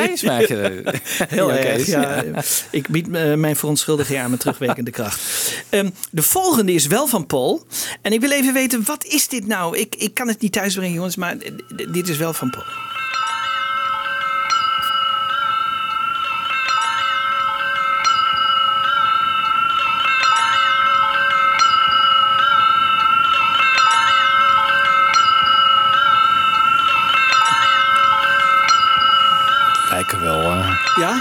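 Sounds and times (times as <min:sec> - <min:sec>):
wind chimes hanging by a door: 0:00.0 - 0:02.6, 0:11.4 - 0:31.1
laughter: 0:00.0 - 0:02.9, 0:03.9 - 0:05.1
speech: 0:00.0 - 0:13.3.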